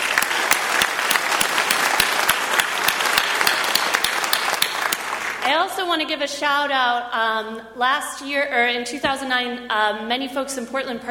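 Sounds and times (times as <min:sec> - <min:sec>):
audience applause: 0:00.0 - 0:05.4
speech: 0:05.6 - 0:11.0.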